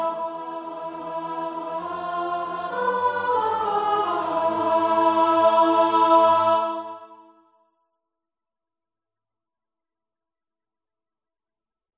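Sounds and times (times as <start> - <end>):
alto voice singing a panxolina: 0.0 - 7.2.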